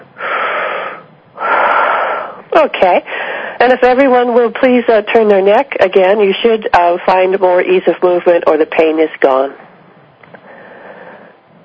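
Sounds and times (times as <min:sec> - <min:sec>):
group of people taking deep breaths: 0:00.2 - 0:02.5, 0:03.1 - 0:03.6, 0:10.3 - 0:11.6
speech: 0:02.6 - 0:09.6.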